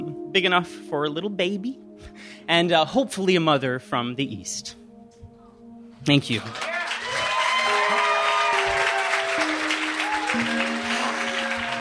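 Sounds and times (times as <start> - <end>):
speech: 0.4 - 4.8, 6.0 - 6.7
audience applause: 6.4 - 11.7.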